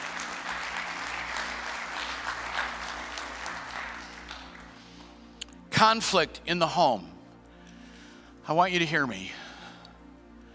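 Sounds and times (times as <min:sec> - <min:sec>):
audience applause: 0:00.0 - 0:05.2
speech: 0:05.8 - 0:07.1, 0:08.5 - 0:09.4.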